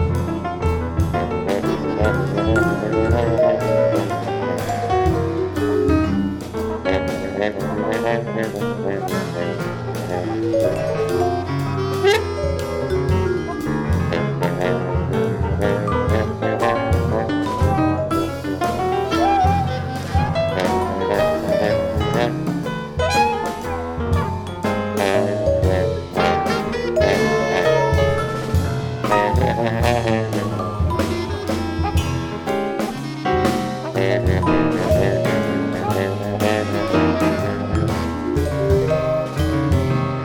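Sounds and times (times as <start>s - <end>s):
Rhodes electric piano playing free jazz: 0.0s - 40.2s
bass clarinet playing free jazz: 0.0s - 40.2s
drums playing free jazz: 0.0s - 40.2s
trombone playing free jazz: 0.0s - 40.2s
trumpet playing free jazz: 0.0s - 40.2s
vibraphone playing free jazz: 1.8s - 6.4s, 9.9s - 14.4s, 23.1s - 40.0s.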